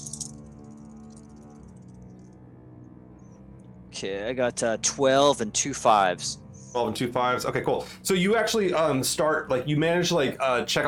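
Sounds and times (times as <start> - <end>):
dice rolling: 0.0 - 1.9
speech: 4.0 - 10.8.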